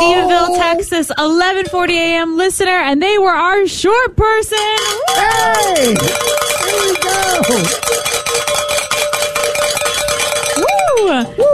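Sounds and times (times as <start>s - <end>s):
speech: 0.4s - 6.3s, 7.0s - 8.0s, 11.0s - 11.5s
bells ringing: 4.8s - 11.2s.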